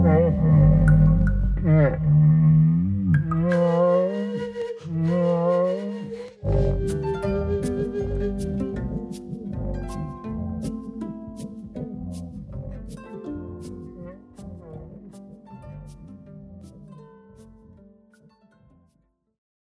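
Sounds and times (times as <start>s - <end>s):
rotisserie friction: 0.0s - 15.3s.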